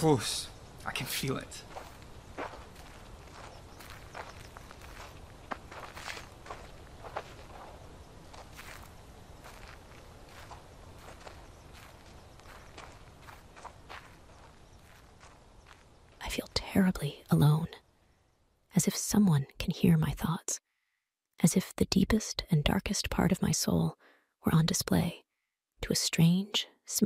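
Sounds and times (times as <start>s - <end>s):
speech: 0.0s - 1.7s, 16.8s - 17.8s, 18.8s - 20.7s, 21.4s - 25.2s, 25.8s - 27.0s
constant hiss: 0.0s - 19.3s
footsteps of people walking: 1.3s - 16.2s.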